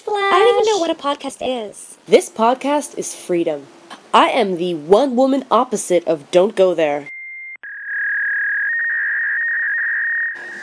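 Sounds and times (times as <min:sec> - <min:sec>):
speech: 0:00.8 - 0:07.2
electronic doorbell beeps: 0:07.1 - 0:07.8
high-pitched steady doorbell tone: 0:07.1 - 0:10.6.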